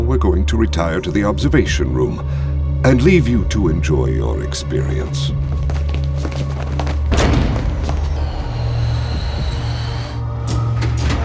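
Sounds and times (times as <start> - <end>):
speech: 0.1 - 6.5
low hum: 5.3 - 11.2
rattling and clanking: 5.4 - 11.2
heavy door thudding shut: 6.9 - 11.2.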